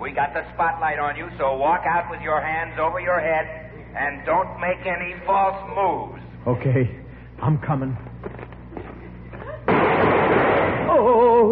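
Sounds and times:
speech: 0.0s - 8.1s
gunfire burst in a radio drama: 9.7s - 10.9s.

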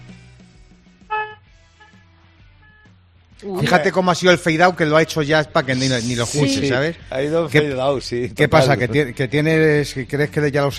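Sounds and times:
car horn honking: 1.1s - 3.0s
speech: 3.4s - 10.7s.

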